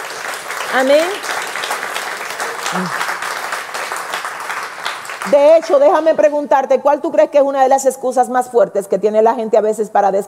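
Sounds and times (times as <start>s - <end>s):
crowd applauding: 0.0s - 6.1s
speech: 0.7s - 1.4s, 2.7s - 3.1s, 5.2s - 10.2s
brief vocal murmur: 2.6s - 3.1s.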